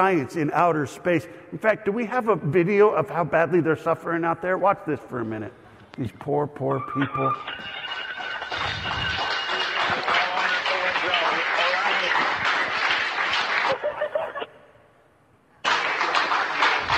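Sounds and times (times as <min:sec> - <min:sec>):
speech: 0:00.0 - 0:07.8
roomful of people cheering and clapping: 0:07.6 - 0:14.3, 0:15.6 - 0:16.9
laughter: 0:13.6 - 0:14.6.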